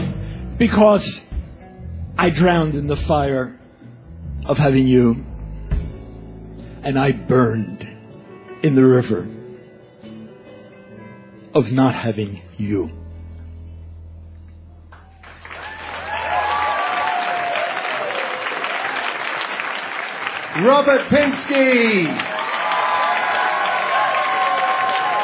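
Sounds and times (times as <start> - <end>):
speech: 0.6 - 1.3, 2.2 - 3.6, 4.4 - 5.3, 6.8 - 7.8, 8.6 - 9.4, 11.6 - 13.0, 20.6 - 22.3
audience cheering and applauding: 14.9 - 25.2.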